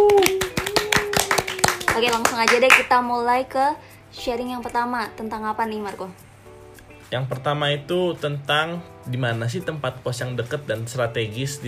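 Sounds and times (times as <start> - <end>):
hand clapping: 0.0 - 3.1
speech: 2.0 - 6.2, 7.1 - 11.6.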